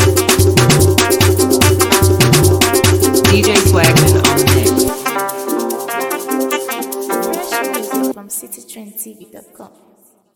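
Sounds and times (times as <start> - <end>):
West African beat: 0.0 - 8.1.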